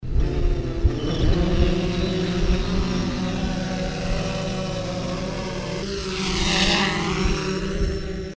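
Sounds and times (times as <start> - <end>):
drone: 0.0 - 8.3.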